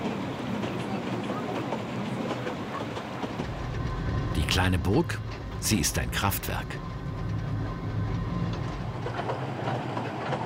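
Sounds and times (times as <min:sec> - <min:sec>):
train running along mountain railway: 0:00.0 - 0:10.4
train wheels clacking rhythmically: 0:00.0 - 0:10.4
speech: 0:04.5 - 0:07.0.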